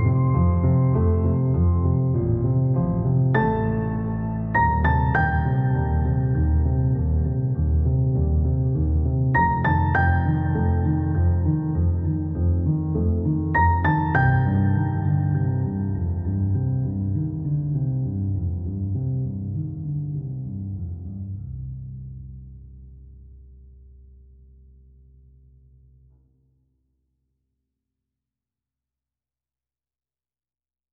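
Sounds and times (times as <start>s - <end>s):
piano: 0.0s - 23.7s.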